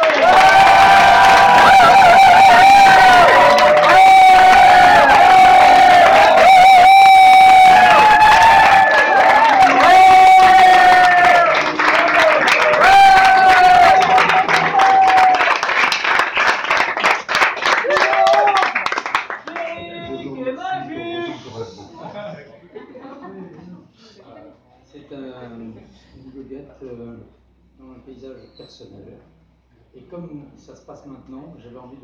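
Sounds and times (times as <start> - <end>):
audience applauding and cheering: 0.0 - 20.0.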